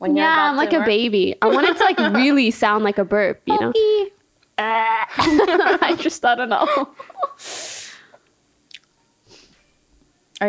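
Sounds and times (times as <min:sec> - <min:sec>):
speech: 0:00.0 - 0:07.5
laughter: 0:01.4 - 0:02.4, 0:05.1 - 0:07.4
breathy rush of noise: 0:07.2 - 0:08.3
chewing on a chicken foot: 0:08.7 - 0:08.9.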